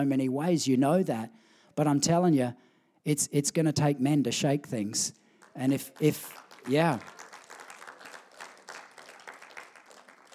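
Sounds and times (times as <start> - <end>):
speech: 0.0 - 7.2
person clapping: 5.4 - 10.3.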